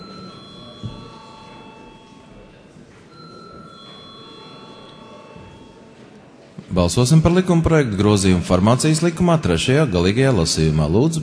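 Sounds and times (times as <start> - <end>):
parliament chamber bell ringing for vote: 0.0 - 2.5, 3.1 - 6.0
low murmur of noise: 0.0 - 11.2
speech: 0.8 - 1.0, 6.8 - 11.2.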